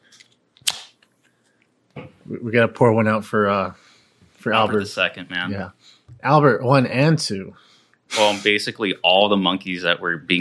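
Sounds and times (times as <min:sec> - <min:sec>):
beverage can cracked open: 0:00.6 - 0:01.0
speech: 0:02.3 - 0:03.8, 0:04.4 - 0:10.3.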